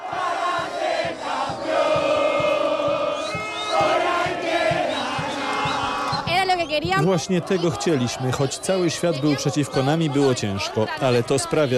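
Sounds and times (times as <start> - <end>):
steady rhythmic beats: 0.0 - 8.1
Argentina fans cheering and chanting in fan zone outside Atlanta stadium: 0.0 - 11.7
speech: 6.8 - 11.7.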